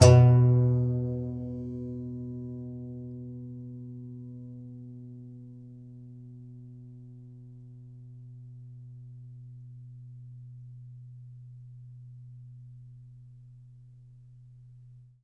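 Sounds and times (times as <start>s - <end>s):
contrabass balalaika plucked strings: 0.0s - 3.2s.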